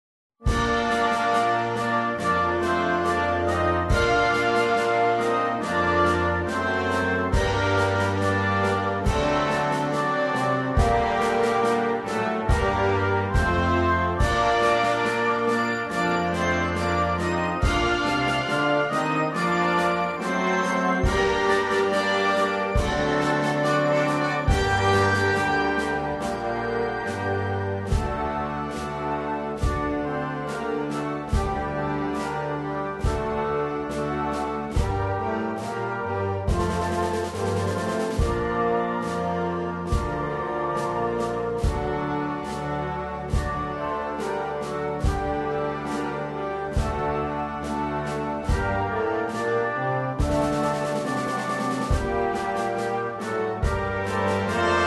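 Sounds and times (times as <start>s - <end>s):
wind band playing a national anthem: 0.4s - 54.8s.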